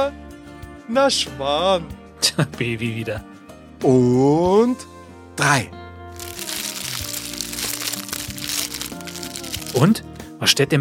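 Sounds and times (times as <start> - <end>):
speech: 0.9 - 5.8, 9.8 - 10.7
fortune cookie wrappers crinkling: 6.2 - 9.9
fortune cookies cracking and crunching open: 6.2 - 9.9.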